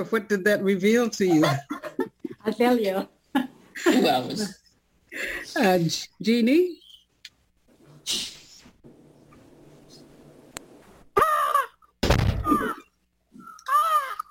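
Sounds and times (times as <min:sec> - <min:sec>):
speech: 0:00.0 - 0:01.7, 0:02.4 - 0:06.8, 0:08.1 - 0:08.4
person imitating a crow's caw: 0:11.2 - 0:11.8, 0:13.5 - 0:14.3.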